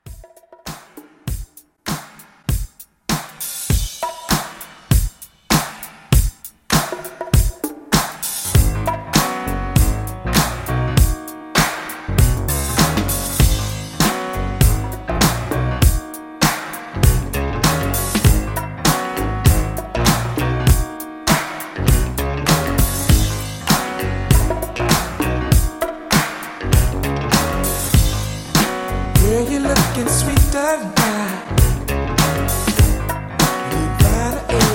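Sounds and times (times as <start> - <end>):
1980s RnB drum beat: 0.0 - 34.7.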